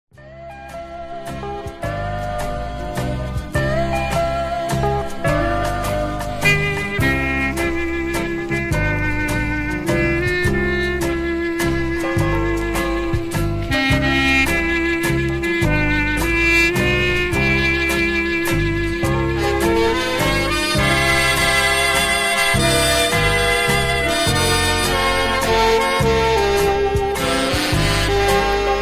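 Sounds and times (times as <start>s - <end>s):
instrumental waltz: 0.2s - 28.8s.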